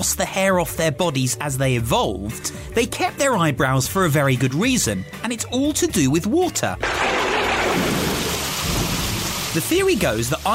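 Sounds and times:
speech: 0:00.0 - 0:07.2, 0:09.5 - 0:10.5
heavy rain: 0:06.8 - 0:10.5.

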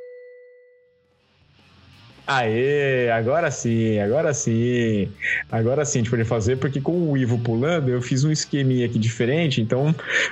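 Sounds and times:
bell-like ding of a sports show intro jingle: 0:00.0 - 0:00.9
speech: 0:02.3 - 0:10.3.

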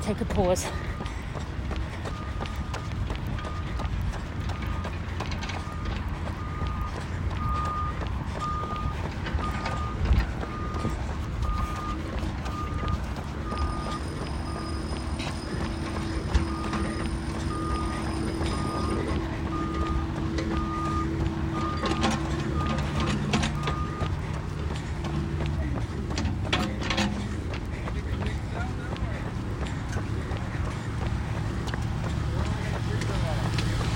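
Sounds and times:
construction site rumbling background: 0:00.0 - 0:33.9
truck backup alarm beeping at a construction site: 0:00.0 - 0:33.9.

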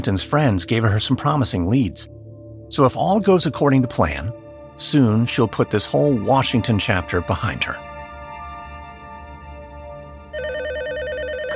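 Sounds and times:
speech: 0:00.0 - 0:07.8
droning tonal background: 0:01.6 - 0:11.5
warbling electronic telephone ring: 0:10.3 - 0:11.5.

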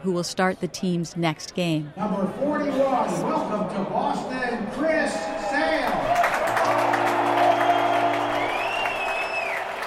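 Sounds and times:
speech: 0:00.0 - 0:07.1
Fenway Park crowd cheering and applauding for pitcher Chris Sale: 0:05.1 - 0:09.8.

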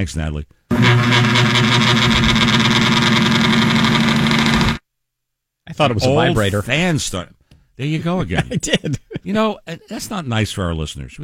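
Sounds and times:
speech: 0:00.0 - 0:02.0, 0:05.7 - 0:11.2
old fan running: 0:00.7 - 0:04.8
laughter: 0:08.0 - 0:10.0.

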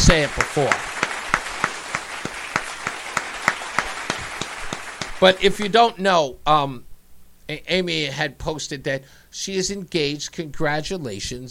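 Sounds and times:
audience applause: 0:00.0 - 0:05.7
speech: 0:00.1 - 0:00.9, 0:05.2 - 0:06.9, 0:07.5 - 0:11.4.

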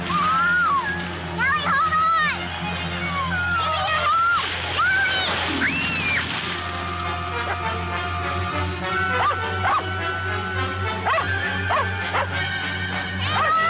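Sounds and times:
steady low hum: 0:00.0 - 0:13.5
dog barking frantically: 0:09.2 - 0:09.9, 0:11.0 - 0:12.4.

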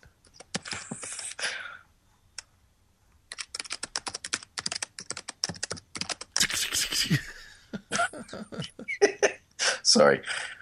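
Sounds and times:
fast clacking on a computer keyboard: 0:03.3 - 0:06.4
laughter: 0:06.4 - 0:09.4
speech: 0:10.0 - 0:10.4.

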